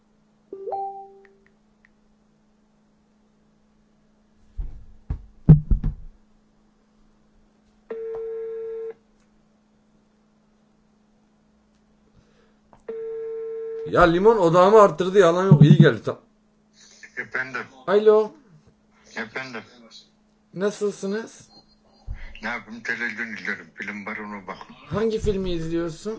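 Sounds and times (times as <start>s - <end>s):
speech: 13.9s - 16.3s, 17.2s - 18.4s, 19.1s - 21.5s, 22.4s - 26.1s
ringback tone on an outgoing phone call: 15.5s - 16.0s
short beep: 15.5s - 16.0s.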